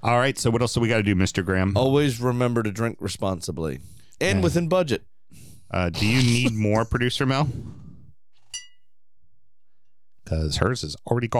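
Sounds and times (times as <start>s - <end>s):
speech: 0.0s - 7.8s, 10.3s - 11.3s
glasses clinking in a toast: 8.4s - 8.9s.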